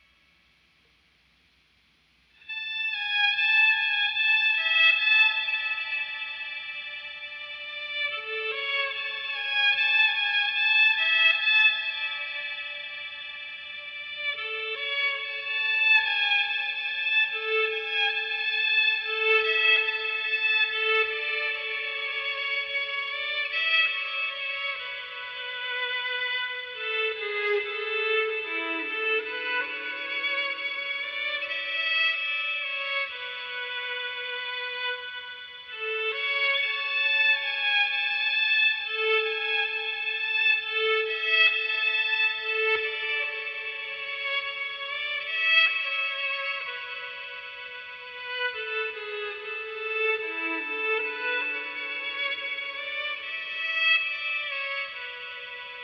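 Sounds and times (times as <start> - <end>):
violin: 2.3 - 55.8.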